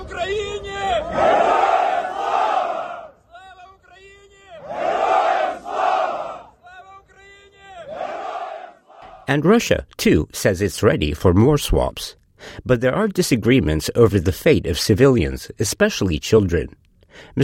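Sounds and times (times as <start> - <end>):
crowd chanting slogan: 0.9 - 3.2, 4.5 - 6.6, 7.6 - 9.3
speech: 9.3 - 17.4.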